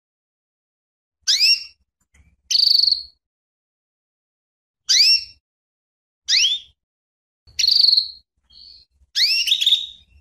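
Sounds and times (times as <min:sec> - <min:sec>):
female canary calling with sharp sweeping chirps and buzzy notes: 0:01.2 - 0:03.2, 0:04.8 - 0:05.4, 0:06.3 - 0:06.8, 0:07.5 - 0:10.1.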